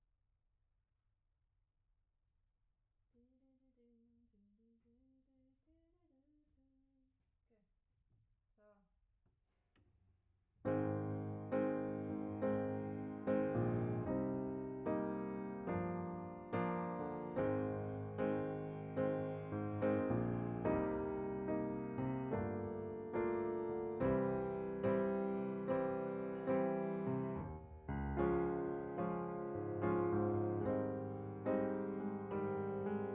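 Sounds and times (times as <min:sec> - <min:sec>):
piano: 0:10.7 - 0:33.1.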